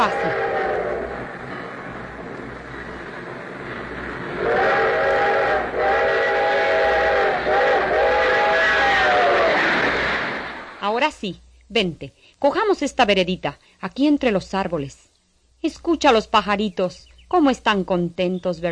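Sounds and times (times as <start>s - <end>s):
train horn blasts: 0.0s - 1.7s, 4.3s - 9.6s
train rumbling along railway tracks: 0.0s - 10.8s
speech: 11.1s - 15.0s, 15.6s - 18.6s.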